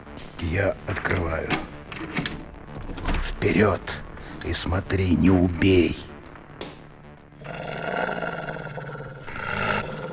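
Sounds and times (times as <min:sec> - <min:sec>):
speech: 0:00.4 - 0:02.3, 0:03.2 - 0:06.1
dog growling: 0:07.4 - 0:10.1.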